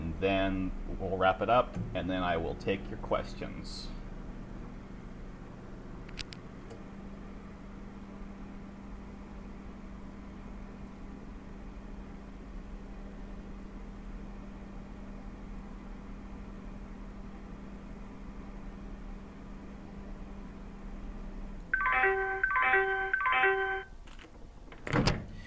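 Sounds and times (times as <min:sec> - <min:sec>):
Talking Microwave Oven 2 defrosting ice cream: 0:00.0 - 0:24.6
speech: 0:00.2 - 0:04.0
Talking Microwave Oven 2 beeps: 0:21.7 - 0:23.9.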